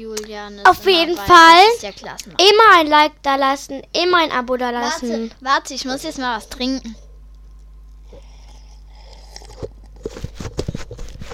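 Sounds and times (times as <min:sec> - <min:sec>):
speech: 0:00.0 - 0:07.0
microphone being handled and moved: 0:09.6 - 0:11.3.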